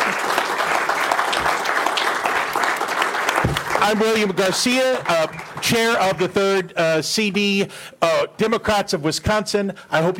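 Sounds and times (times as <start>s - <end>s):
crowd applauding for candidates: 0.0s - 6.4s
speech: 3.9s - 10.1s.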